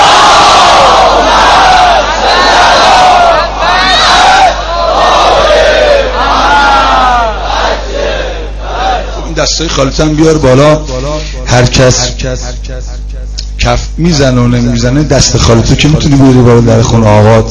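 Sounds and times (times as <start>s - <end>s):
crowd chanting salawat in unison at a religious gathering: 0.0s - 9.4s
speech: 9.7s - 13.0s, 13.6s - 17.4s.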